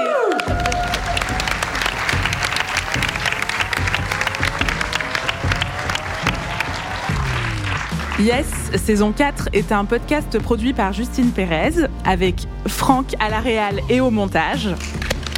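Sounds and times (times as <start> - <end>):
audience applause: 0.0 - 8.7, 15.0 - 15.3
speech: 8.2 - 15.0.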